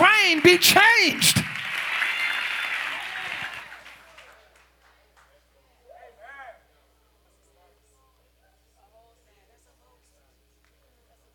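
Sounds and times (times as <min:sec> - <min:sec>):
audience applauding: 0:00.0 - 0:04.8
speech: 0:00.3 - 0:01.5.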